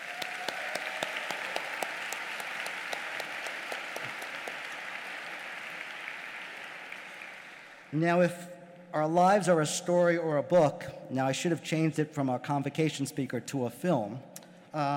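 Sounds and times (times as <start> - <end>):
audience applause: 0.0 - 8.0
speech: 7.9 - 14.9.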